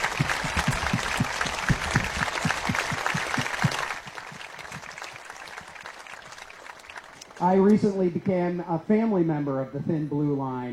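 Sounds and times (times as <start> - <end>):
audience applause: 0.0 - 7.8
speech: 7.4 - 10.7.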